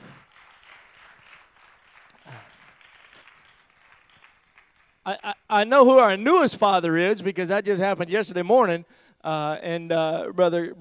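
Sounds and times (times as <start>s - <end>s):
audience clapping: 0.0s - 6.2s
speech: 5.1s - 10.7s.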